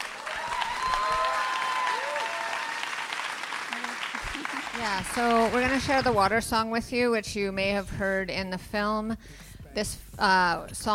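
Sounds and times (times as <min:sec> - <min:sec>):
audience applause: 0:00.0 - 0:06.0
speech: 0:04.8 - 0:10.9.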